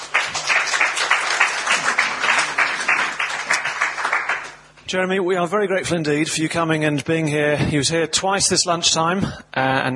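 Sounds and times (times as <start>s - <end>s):
audience applause welcoming a speaker: 0.0s - 4.7s
speech: 4.9s - 9.9s.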